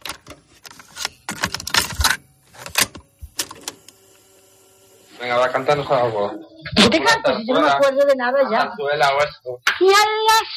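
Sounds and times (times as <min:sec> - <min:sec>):
cassette tape pushed into a player: 0:00.0 - 0:04.2
speech: 0:05.2 - 0:10.5.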